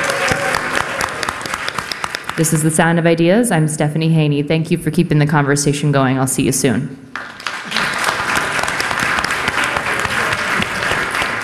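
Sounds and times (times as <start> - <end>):
live audience applause: 0.0 - 2.5, 7.2 - 11.4
speech: 2.4 - 7.3.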